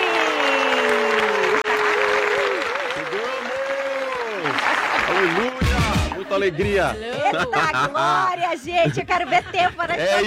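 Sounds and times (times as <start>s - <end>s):
voices cheering and calling out: 0.0s - 6.6s
crowd applause: 0.0s - 6.8s
laughter: 5.1s - 10.2s
speech: 6.4s - 10.2s.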